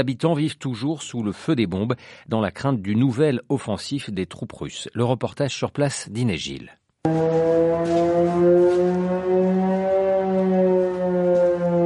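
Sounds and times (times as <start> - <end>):
speech: 0.0 - 9.6
air raid warning siren: 7.1 - 11.8.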